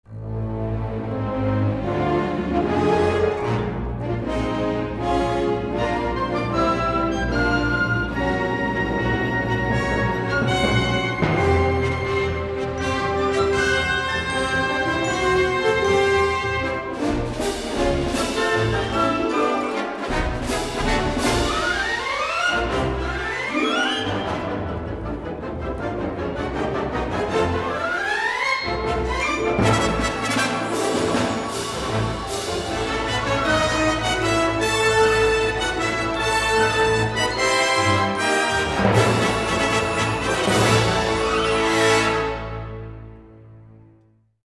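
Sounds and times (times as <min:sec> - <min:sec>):
victory music: 0:00.1 - 0:43.7.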